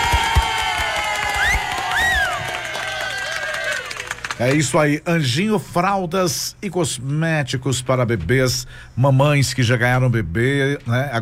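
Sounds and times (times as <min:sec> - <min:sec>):
people whooping: 0:00.0 - 0:04.4
lively crowd cheering: 0:00.0 - 0:04.7
speech: 0:04.4 - 0:11.2.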